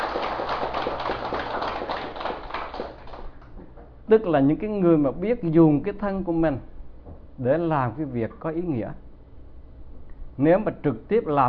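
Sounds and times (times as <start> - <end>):
crowd clapping: 0.0 - 3.5
speech: 4.1 - 6.7, 7.4 - 9.0, 10.4 - 11.4.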